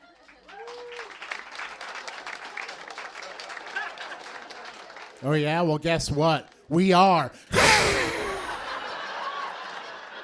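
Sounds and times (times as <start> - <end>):
audience applause: 0.0 - 5.8, 7.6 - 10.2
laughter: 3.3 - 4.7, 7.5 - 10.2
speech: 5.2 - 8.1
person whooping: 7.5 - 8.6.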